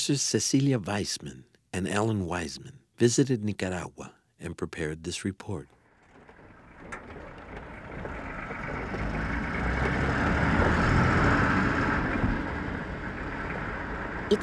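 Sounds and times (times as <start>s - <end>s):
speech: 0.0s - 5.8s
four-wheel drive Toyota pickup and Russian Jeep rumbling along a logging trail: 5.8s - 14.4s.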